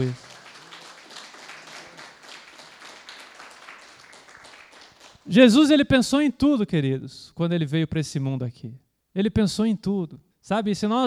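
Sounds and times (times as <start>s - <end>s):
speech: 0.0s - 0.3s, 5.3s - 11.0s
audience applause: 0.0s - 5.3s.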